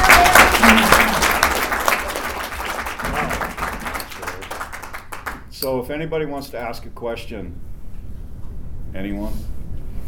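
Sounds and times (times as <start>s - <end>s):
audience applause: 0.0s - 5.5s
speech: 5.7s - 7.7s, 8.9s - 9.6s.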